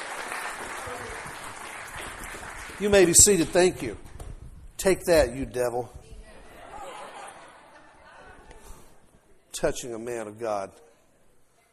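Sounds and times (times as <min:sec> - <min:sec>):
audience applause: 0:00.0 - 0:03.8
speech: 0:02.8 - 0:04.1, 0:04.8 - 0:06.0, 0:09.6 - 0:10.8
laughter: 0:06.4 - 0:09.0.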